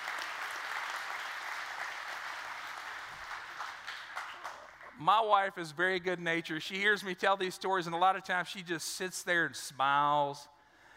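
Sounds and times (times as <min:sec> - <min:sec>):
audience applause at a stand-up comedy show: 0:00.0 - 0:05.0
speech: 0:05.0 - 0:10.5.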